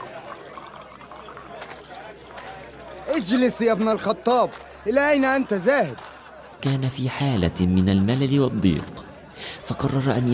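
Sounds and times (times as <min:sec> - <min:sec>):
wine pouring: 0:00.0 - 0:01.7
speech: 0:03.1 - 0:06.0, 0:06.6 - 0:09.0, 0:09.7 - 0:10.3.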